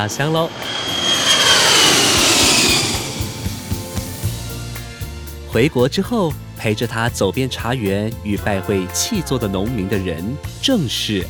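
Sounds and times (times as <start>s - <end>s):
speech: 0.0s - 1.0s, 5.5s - 11.2s
airplane taking off: 0.0s - 5.1s
low thumps and rumbles: 0.0s - 5.2s.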